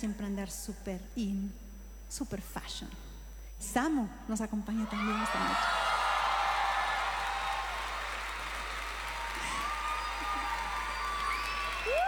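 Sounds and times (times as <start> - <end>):
speech: 0.0 - 5.9
audience applause: 5.0 - 12.0.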